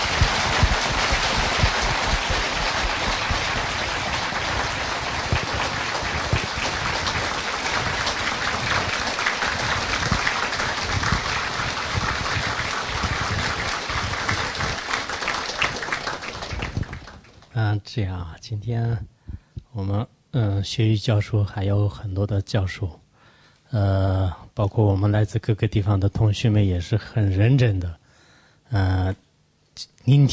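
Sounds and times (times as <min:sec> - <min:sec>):
audience applause: 0:00.0 - 0:17.5
speech: 0:17.8 - 0:19.1, 0:19.8 - 0:23.0, 0:23.7 - 0:28.0, 0:28.7 - 0:29.2, 0:29.8 - 0:30.3.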